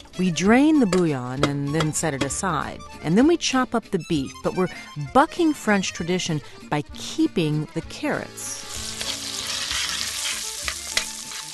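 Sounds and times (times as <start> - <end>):
speech: 0.2 - 8.8
sausage frying in a pan for a French-style shepherd's pie: 8.6 - 11.5.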